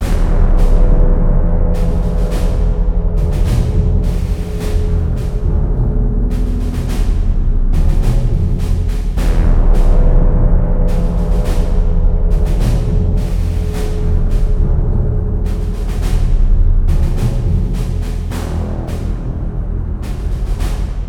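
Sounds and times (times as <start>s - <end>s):
music: 0.0s - 21.0s.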